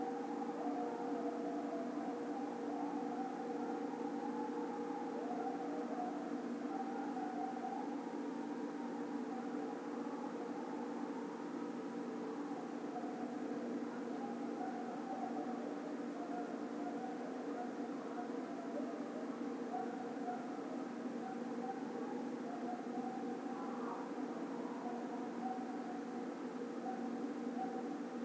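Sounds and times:
coyote Canis latrans howling: 0.0s - 28.2s.

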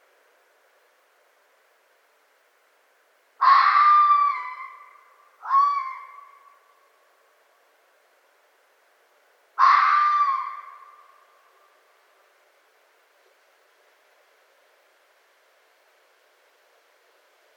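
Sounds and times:
red fox uttering hoarse screams: 3.4s - 6.6s, 9.6s - 11.2s.

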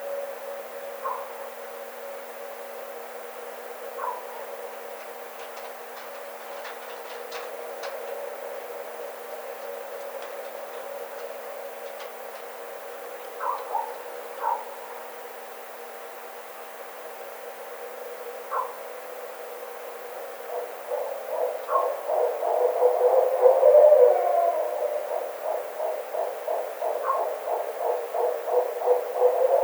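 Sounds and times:
Barred Owl calling: 1.0s - 1.3s, 4.0s - 4.4s, 13.3s - 15.0s, 18.5s - 18.8s, 20.5s - 29.6s.

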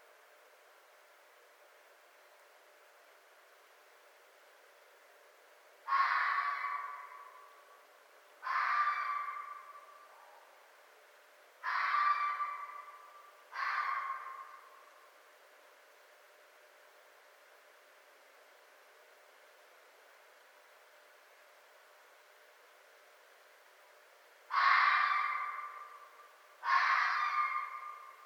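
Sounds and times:
red fox screaming: 5.9s - 7.4s, 8.4s - 10.4s, 11.6s - 14.8s, 24.5s - 28.2s.

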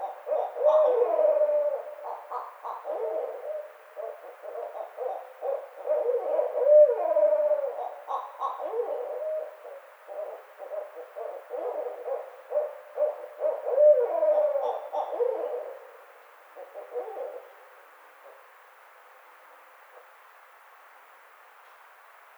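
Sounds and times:
Barred owl caterwauling: 0.0s - 15.9s, 16.6s - 17.6s.

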